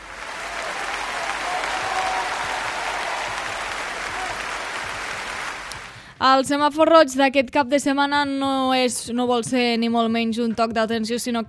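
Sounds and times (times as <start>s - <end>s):
applause: 0.0s - 6.2s
speech: 6.2s - 11.4s.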